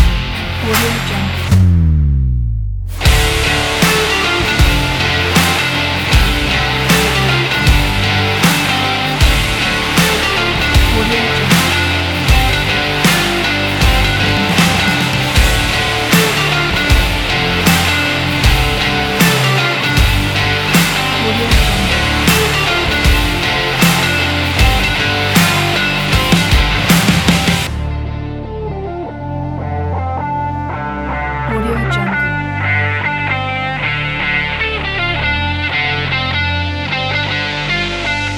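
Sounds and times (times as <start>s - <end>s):
sport rock guitar background music: 0.0s - 1.8s, 3.0s - 38.3s.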